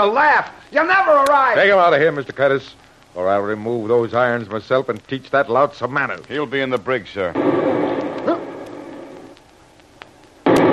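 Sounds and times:
speech: 0:00.0 - 0:07.9
steady low rumbling noise: 0:07.3 - 0:10.7
torpedo explosion hitting a ship: 0:07.4 - 0:09.4, 0:10.4 - 0:10.7.

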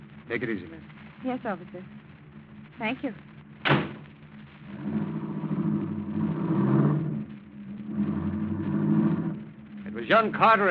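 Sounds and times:
speech: 0:00.3 - 0:02.0, 0:02.8 - 0:03.3, 0:10.1 - 0:10.6
car engine starting and driving off: 0:04.7 - 0:10.6.

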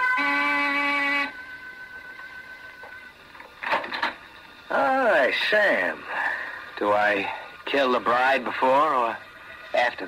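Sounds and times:
electric door buzzer: 0:00.0 - 0:03.0
clattering rustle: 0:02.8 - 0:04.3
speech: 0:04.7 - 0:06.2, 0:06.8 - 0:10.0.

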